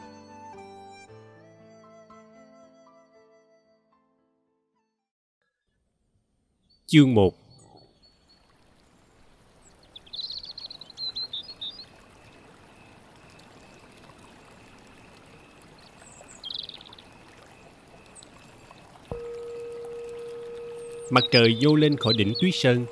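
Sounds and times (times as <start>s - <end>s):
birds chirping at daybreak: 6.6s - 22.9s
speech: 6.9s - 7.4s, 21.2s - 22.9s
steady hiss of flowing water: 8.2s - 22.9s
sustained low tone: 19.1s - 22.9s.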